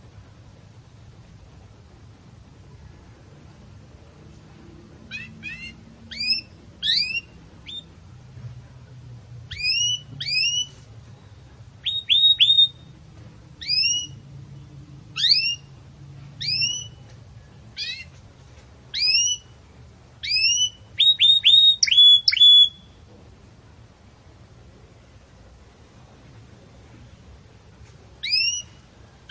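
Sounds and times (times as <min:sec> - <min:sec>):
Belgian canary chirping: 0:05.1 - 0:07.9, 0:09.5 - 0:10.7, 0:11.8 - 0:13.0, 0:13.6 - 0:14.2, 0:15.2 - 0:15.7, 0:16.4 - 0:17.0, 0:17.8 - 0:18.1, 0:18.9 - 0:19.5, 0:20.2 - 0:23.0, 0:28.2 - 0:29.2.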